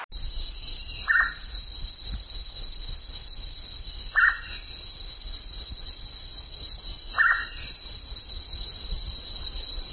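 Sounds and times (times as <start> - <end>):
Gurney's pitta uttering downslurred calls: 0.1 - 9.9.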